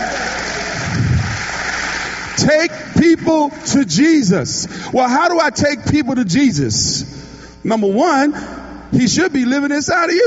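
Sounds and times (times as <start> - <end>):
crowd clapping: 0.0 - 3.4
speech: 2.4 - 10.2.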